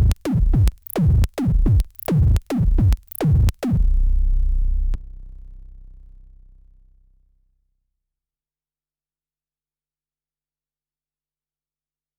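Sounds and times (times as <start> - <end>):
DFAM analogue synthesizer drum sounds: 0.0 - 5.0.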